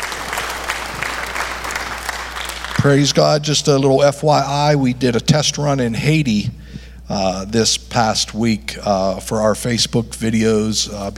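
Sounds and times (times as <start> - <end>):
church congregation applauding: 0.0 - 3.5
speech: 2.8 - 11.1.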